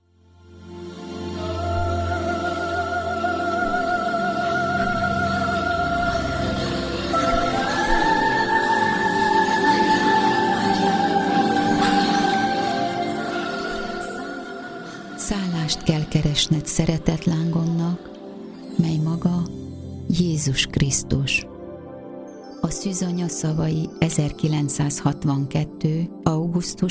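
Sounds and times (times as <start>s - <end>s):
jingle: 1.0s - 26.8s.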